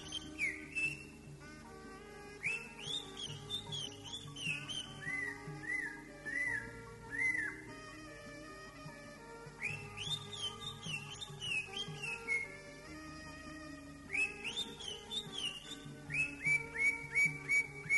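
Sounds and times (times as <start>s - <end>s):
greater green leafbird song: 0.0s - 1.4s, 2.4s - 7.9s, 9.5s - 12.9s, 14.0s - 17.9s.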